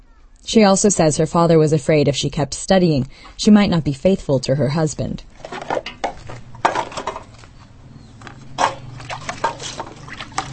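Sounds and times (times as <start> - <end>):
speech: 0.4 - 5.6
washing pots and spoons with water from buckets in a yard: 5.3 - 10.5.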